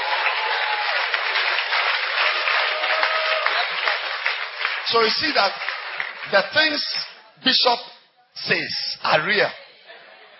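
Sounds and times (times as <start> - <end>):
church audience clapping: 0.0 - 7.2
speech: 4.9 - 5.7, 6.3 - 9.6
laughter: 9.7 - 10.3.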